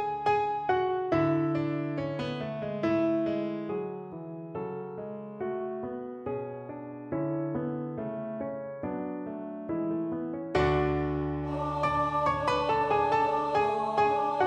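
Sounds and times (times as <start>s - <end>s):
bass piano accompaniment training score: 0.0s - 14.4s.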